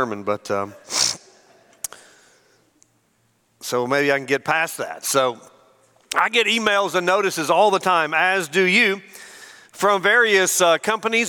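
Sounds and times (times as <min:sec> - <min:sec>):
speech: 0:00.0 - 0:01.0, 0:03.7 - 0:05.5, 0:06.1 - 0:09.2, 0:09.8 - 0:11.2
faint snuffle: 0:00.7 - 0:01.3
person sneezing during a sermon: 0:00.7 - 0:02.0.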